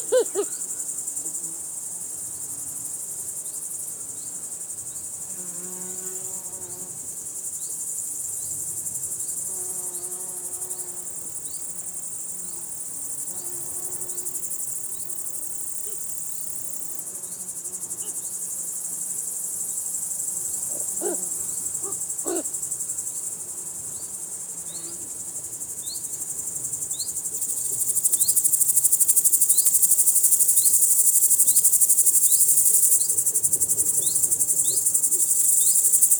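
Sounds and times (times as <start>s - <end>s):
grasshoppers in a field: 0.0s - 36.1s
insects in a field: 0.0s - 36.1s
crows in a field: 20.8s - 21.2s, 21.8s - 22.5s.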